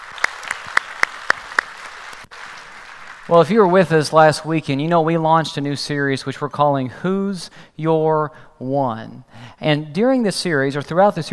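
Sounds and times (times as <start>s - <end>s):
hands clapping at a campus family meeting: 0.0s - 3.8s
speech: 3.3s - 11.3s.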